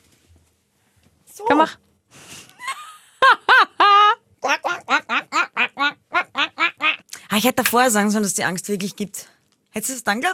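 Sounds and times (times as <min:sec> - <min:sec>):
speech: 0:01.4 - 0:01.8, 0:07.4 - 0:10.3
person imitating duck quacks: 0:04.4 - 0:07.1.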